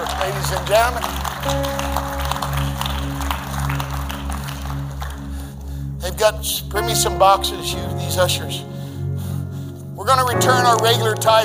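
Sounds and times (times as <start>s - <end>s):
audience clapping: 0.0s - 6.2s, 10.4s - 11.4s
deep bass drone: 0.0s - 11.4s
organ or keyboard chords: 0.0s - 11.4s
speech: 0.2s - 2.1s, 6.2s - 8.7s, 10.0s - 11.4s.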